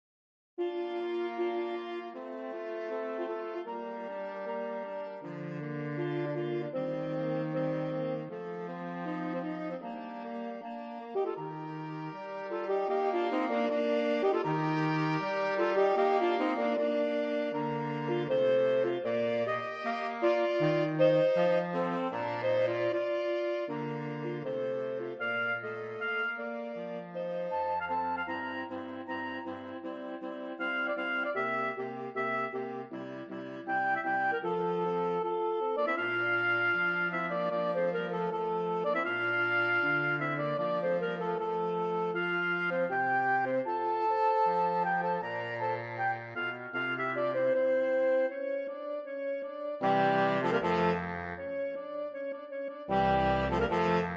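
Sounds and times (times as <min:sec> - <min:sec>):
quartet andante in B flat: 0:00.6 - 0:54.1.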